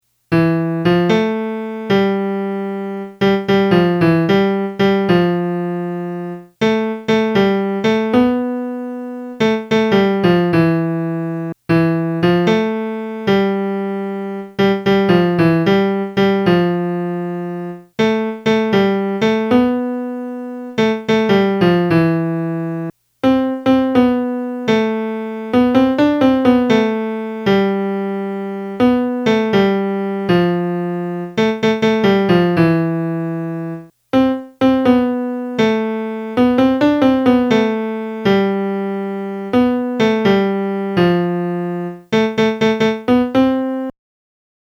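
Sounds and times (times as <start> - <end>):
melody: 0.3 - 43.9.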